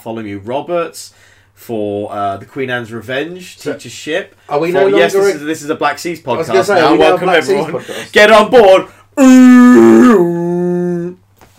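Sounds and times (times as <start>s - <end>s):
speech: 0.0s - 10.3s
voice imitating a foghorn blast: 9.2s - 11.2s.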